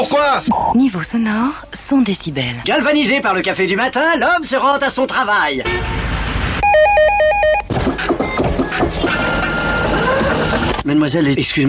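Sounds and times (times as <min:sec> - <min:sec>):
speech: 0:00.0 - 0:07.4, 0:10.9 - 0:11.6
telephone ringing: 0:06.6 - 0:10.8.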